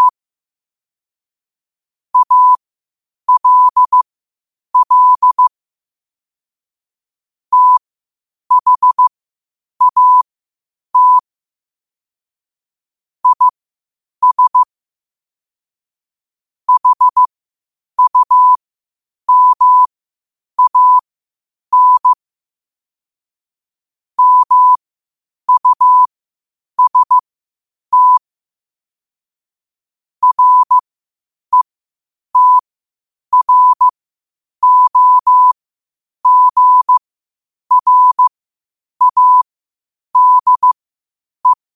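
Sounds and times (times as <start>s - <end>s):
morse code at 5 wpm: 2.2s - 2.6s, 3.3s - 4.0s, 4.8s - 5.5s, 7.5s - 7.8s, 8.5s - 9.1s, 9.8s - 10.2s, 11.0s - 11.2s, 13.2s - 13.5s, 14.2s - 14.7s, 16.7s - 17.3s, 18.0s - 18.6s, 19.3s - 19.9s, 20.6s - 21.0s, 21.7s - 22.2s, 24.2s - 24.8s, 25.5s - 26.1s, 26.8s - 27.2s, 27.9s - 28.2s, 30.2s - 30.8s, 32.4s - 32.7s, 33.3s - 33.9s, 34.6s - 35.6s, 36.2s - 37.0s, 37.7s - 38.3s, 39.0s - 39.4s, 40.2s - 40.8s.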